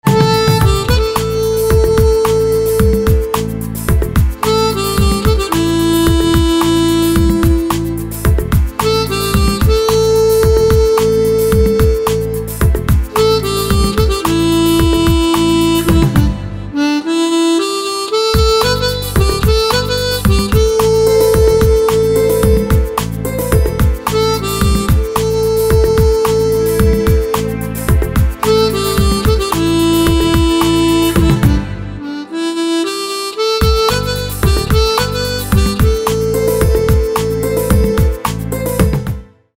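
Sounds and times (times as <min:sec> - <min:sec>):
harmonica: 0:00.0 - 0:39.2.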